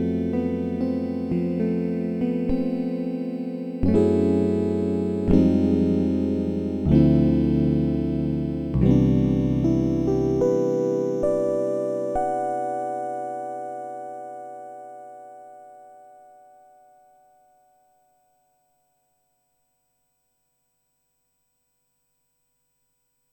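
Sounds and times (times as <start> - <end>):
filtered FM synthesizer tone: 0.0 - 12.3.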